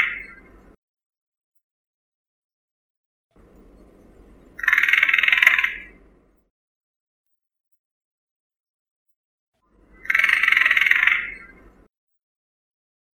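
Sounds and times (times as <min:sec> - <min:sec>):
hooded crow, Corvus cornix, calling: 0:00.0 - 0:00.4, 0:04.6 - 0:06.0, 0:10.0 - 0:11.6.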